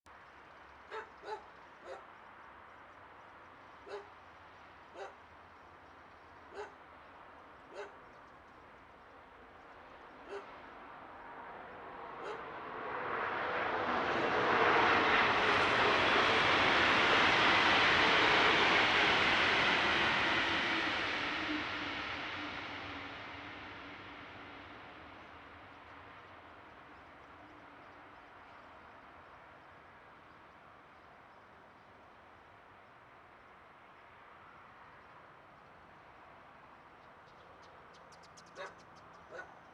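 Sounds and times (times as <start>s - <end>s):
train: 0.0s - 39.7s.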